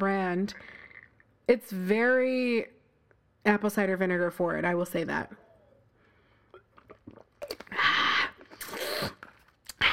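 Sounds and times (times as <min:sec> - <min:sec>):
speech: 0:00.0 - 0:00.8, 0:01.5 - 0:02.8, 0:03.4 - 0:05.4
cake chewed mukbang style: 0:06.5 - 0:09.8.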